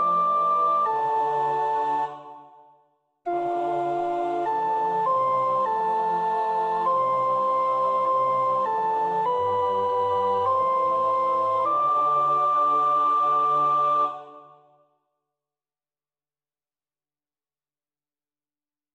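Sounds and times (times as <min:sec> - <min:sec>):
soprano singing a psalm: 0:00.0 - 0:02.7, 0:03.3 - 0:14.6.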